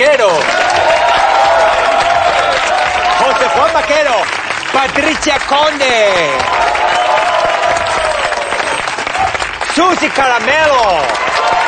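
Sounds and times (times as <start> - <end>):
speech: 0.0 - 0.7, 3.6 - 7.0, 9.8 - 11.6
audience applause: 0.0 - 11.6.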